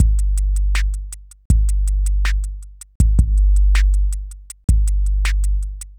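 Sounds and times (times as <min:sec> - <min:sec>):
ambient drum loop: 0:00.0 - 0:05.9.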